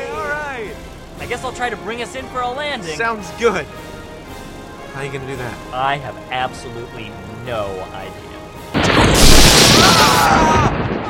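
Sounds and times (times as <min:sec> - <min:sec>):
speech: 0:01.3 - 0:03.9, 0:05.0 - 0:08.3, 0:10.0 - 0:11.0
lightning strike thunderclap: 0:08.7 - 0:11.0.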